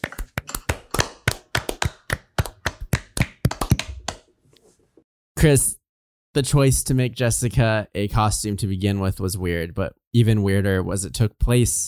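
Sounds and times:
people clapping: 0:00.0 - 0:04.3
speech: 0:05.4 - 0:11.8.

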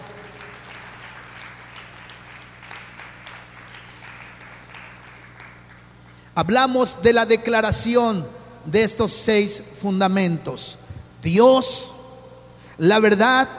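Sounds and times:
audience applauding: 0:00.0 - 0:06.0
low constant hum: 0:00.0 - 0:13.5
speech: 0:06.4 - 0:11.9, 0:12.8 - 0:13.5.

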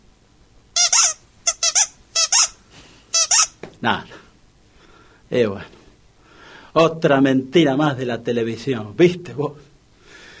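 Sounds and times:
squeaky toy being squeezed: 0:00.8 - 0:03.6
speech: 0:03.8 - 0:04.2, 0:05.3 - 0:05.8, 0:06.8 - 0:09.7.

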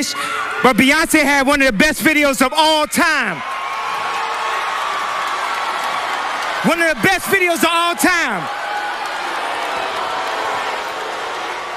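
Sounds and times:
speech: 0:00.0 - 0:03.5, 0:06.6 - 0:08.6
large crowd booing: 0:02.8 - 0:11.7.

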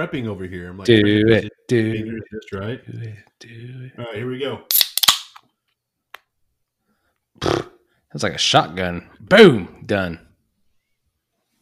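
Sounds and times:
speech: 0:00.0 - 0:04.8, 0:07.4 - 0:10.2
beer can popped open: 0:04.7 - 0:05.4.

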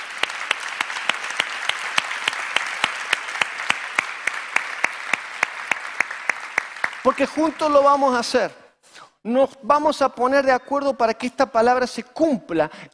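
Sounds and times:
audience applause: 0:00.0 - 0:08.1
speech: 0:07.0 - 0:08.6, 0:09.2 - 0:12.9.

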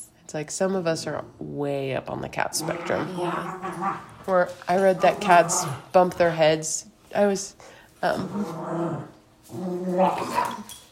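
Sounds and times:
speech: 0:00.3 - 0:10.8
dog growling and making noises: 0:02.5 - 0:06.1, 0:08.0 - 0:10.8.

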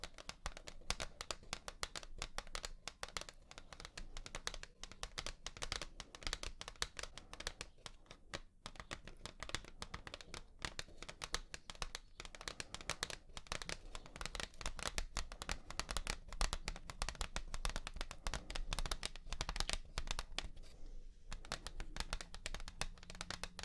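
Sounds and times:
rapid tapping: 0:00.0 - 0:20.7, 0:21.3 - 0:23.6.

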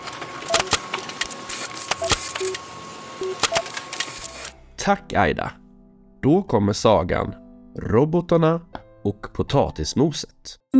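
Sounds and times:
printer printing out a document: 0:00.1 - 0:04.6
short high beeps: 0:00.5 - 0:02.6, 0:03.2 - 0:04.4
speech: 0:04.8 - 0:05.6, 0:06.2 - 0:10.7.

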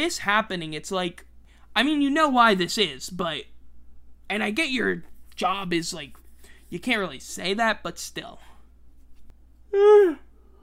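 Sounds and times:
speech: 0:00.0 - 0:03.5, 0:04.3 - 0:08.5, 0:09.7 - 0:10.2
person yawning: 0:09.7 - 0:10.6.

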